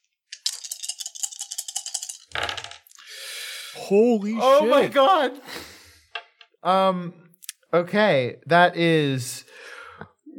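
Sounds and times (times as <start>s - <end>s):
dice rattling in a cup: 0.0s - 3.0s
speech: 3.8s - 5.5s, 6.6s - 9.3s.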